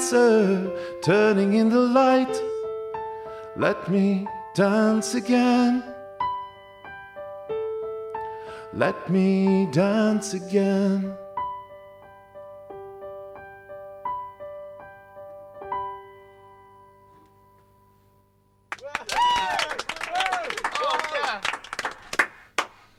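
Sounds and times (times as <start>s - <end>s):
piano notes: 0.0s - 18.6s
speech: 0.1s - 2.5s, 3.6s - 5.9s, 8.7s - 11.2s
audience applause: 18.7s - 22.8s
whoops and cheers: 18.8s - 21.4s.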